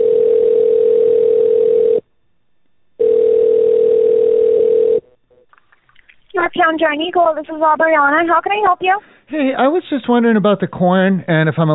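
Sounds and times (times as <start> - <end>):
phone line ringback tone: 0.0 - 2.0, 3.0 - 5.1
speech: 6.5 - 11.7.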